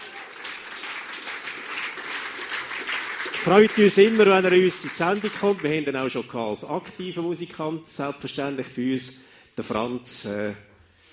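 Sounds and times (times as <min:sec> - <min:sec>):
audience applause: 0:00.0 - 0:06.2
speech: 0:03.4 - 0:10.7.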